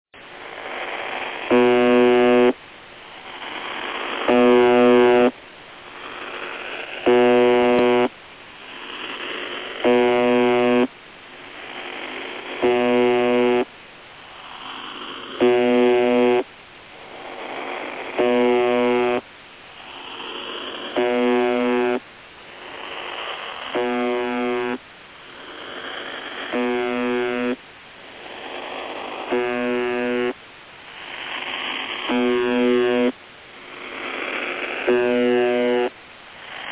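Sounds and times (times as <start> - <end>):
UVB-76 radio buzzer tone: 1.4 - 2.6, 3.7 - 5.4, 6.5 - 8.1, 9.8 - 10.9, 12.5 - 13.7, 15.2 - 16.5, 17.6 - 19.3, 20.2 - 22.0, 22.9 - 24.8, 26.3 - 27.6, 29.2 - 30.4, 31.2 - 33.2, 34.3 - 36.0.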